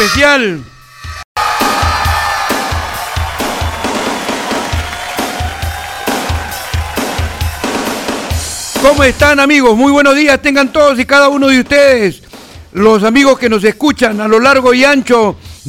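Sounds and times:
speech: 0.0s - 0.7s, 8.8s - 15.6s
regular low thumping beat: 0.0s - 14.3s
crowd applause: 1.4s - 8.6s.

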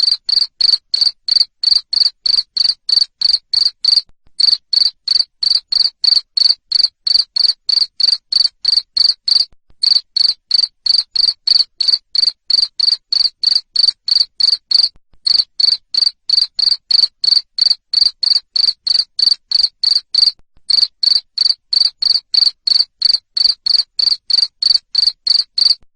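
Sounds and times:
cricket chirping: 0.0s - 25.8s.

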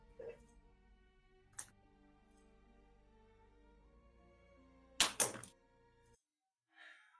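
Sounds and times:
pen falling: 5.0s - 5.6s.

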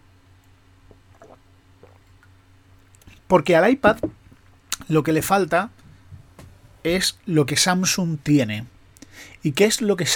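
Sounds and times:
steady low hum: 0.0s - 10.1s
person sipping and swallowing water: 0.8s - 2.3s
speech: 3.3s - 4.2s, 4.9s - 5.8s, 6.8s - 10.1s.

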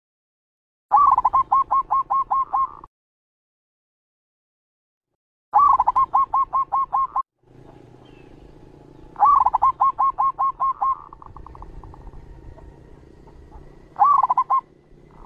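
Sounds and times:
zebra dove cooing song: 0.9s - 2.9s, 5.6s - 8.4s, 9.1s - 15.2s.

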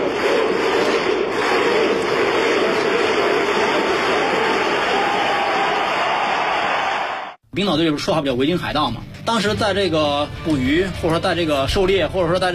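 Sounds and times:
football fans doing a war chant: 0.0s - 7.4s
speech: 7.6s - 12.5s.

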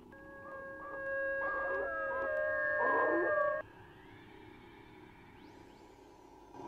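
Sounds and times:
two dogs howling outside at night: 0.5s - 3.6s.

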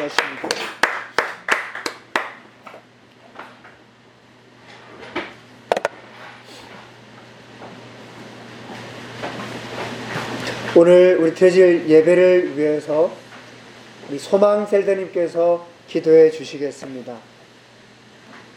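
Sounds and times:
speech: 0.0s - 0.8s, 10.8s - 13.2s, 14.1s - 17.3s
audience applause: 0.0s - 2.4s.

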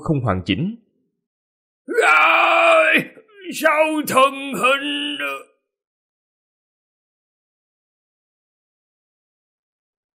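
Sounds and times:
speech: 0.0s - 0.8s, 2.0s - 5.5s
man's loud drawn-out agonized shout: 1.9s - 5.6s.

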